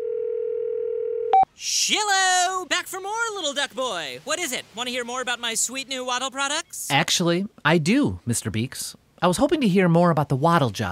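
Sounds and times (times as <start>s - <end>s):
telephone dial tone: 0.0s - 1.5s
speech: 1.6s - 10.8s.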